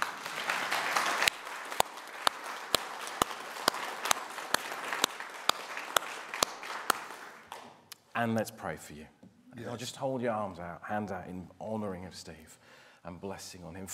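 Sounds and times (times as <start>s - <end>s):
audience clapping: 0.0s - 8.1s
speech: 8.2s - 13.9s.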